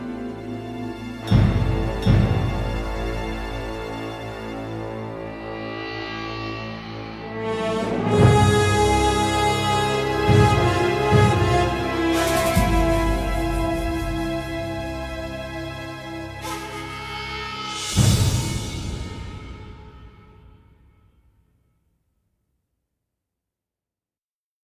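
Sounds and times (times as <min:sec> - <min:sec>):
trance music: 0:00.9 - 0:20.2.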